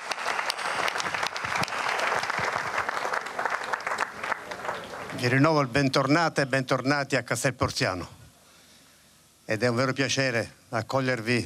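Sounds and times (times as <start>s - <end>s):
audience applause: 0.0s - 5.4s
speech: 5.2s - 8.2s, 9.5s - 11.4s.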